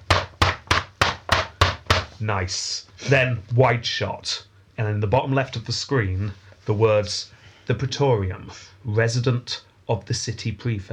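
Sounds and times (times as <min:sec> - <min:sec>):
fist pounding on a wooden gate: 0:00.0 - 0:02.1
speech: 0:02.2 - 0:10.9.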